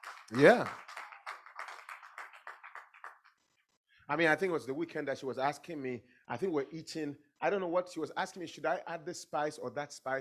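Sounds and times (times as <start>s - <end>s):
audience clapping: 0.0s - 3.4s
speech: 0.3s - 0.8s, 4.1s - 10.2s.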